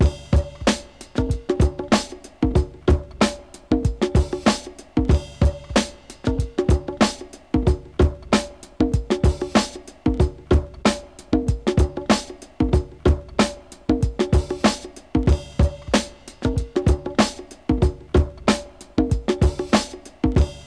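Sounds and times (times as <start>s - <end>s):
drums: 0.0s - 20.6s.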